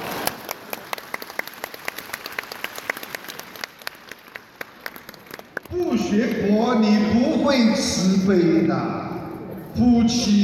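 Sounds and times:
audience applause: 0.0s - 6.2s
speech: 6.1s - 9.0s, 9.8s - 10.4s.

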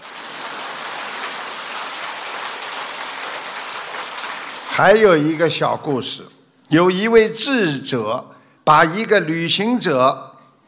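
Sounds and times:
applause: 0.0s - 5.4s
speech: 4.8s - 10.2s.

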